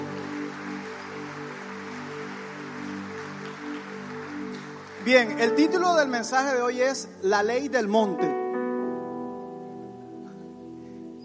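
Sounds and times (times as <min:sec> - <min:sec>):
large crowd clapping: 0:00.0 - 0:07.0
speech: 0:05.0 - 0:08.4.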